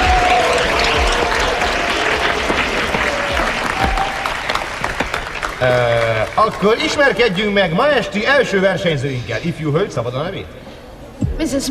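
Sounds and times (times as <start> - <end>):
audience applause: 0.0 - 7.6
speech: 5.6 - 10.6, 11.4 - 11.6.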